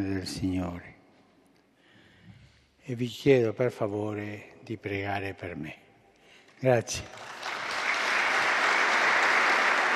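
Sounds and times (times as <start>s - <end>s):
speech: 0.0s - 1.0s, 2.9s - 5.8s, 6.6s - 7.3s
Juventus and Lazio footballers applauding: 7.0s - 9.9s.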